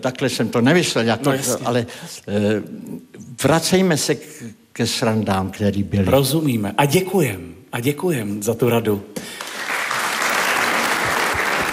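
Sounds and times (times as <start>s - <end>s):
speech: 0.0s - 9.4s
audience applause during a Czech entertainment talk show: 9.3s - 11.7s.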